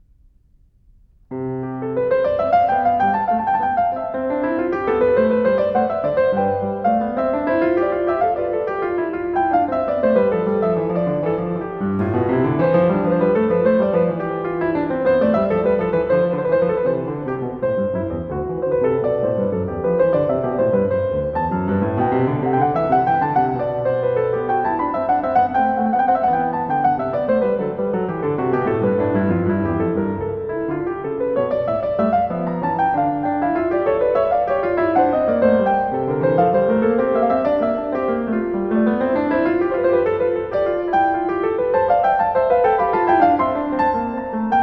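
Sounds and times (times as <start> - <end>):
piano piece: 0.0 - 44.6.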